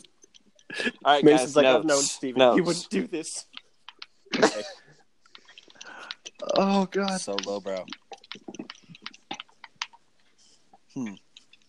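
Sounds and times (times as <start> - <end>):
speech: 0.8 - 3.6, 4.4 - 4.8, 6.4 - 8.0, 11.0 - 11.2
someone typing on a keyboard: 3.4 - 4.2, 5.3 - 10.0.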